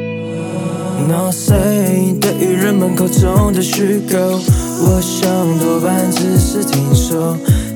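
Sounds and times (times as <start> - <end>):
hip-hop song playing: 0.2 - 7.7
speech: 2.4 - 7.7.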